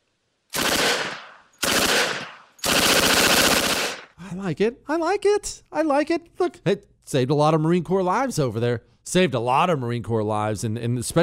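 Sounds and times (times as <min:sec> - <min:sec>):
Thompson submachine gun automatic bursts: 0:00.6 - 0:04.1
speech: 0:04.3 - 0:11.2.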